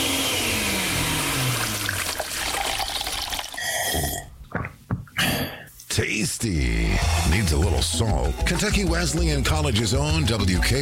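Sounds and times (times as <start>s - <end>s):
blender sound effect in a college radio station ID: 0.0s - 4.0s, 7.0s - 7.3s
speech: 6.0s - 10.7s.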